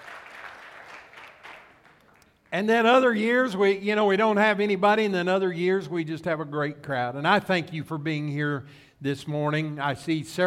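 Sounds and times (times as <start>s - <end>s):
audience applause: 0.0s - 2.2s
speech: 2.5s - 10.4s.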